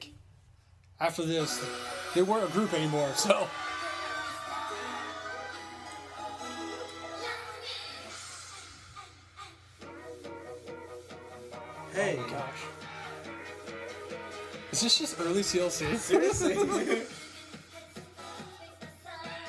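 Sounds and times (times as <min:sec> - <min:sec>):
speech: 0:01.0 - 0:03.7, 0:14.8 - 0:17.2
crowd cheering at a concert: 0:01.7 - 0:07.1
laughter: 0:14.8 - 0:17.4.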